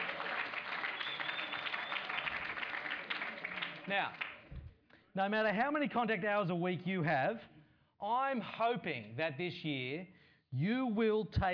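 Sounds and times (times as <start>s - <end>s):
round of applause: 0.0s - 4.5s
speech: 3.9s - 4.2s, 5.2s - 11.5s.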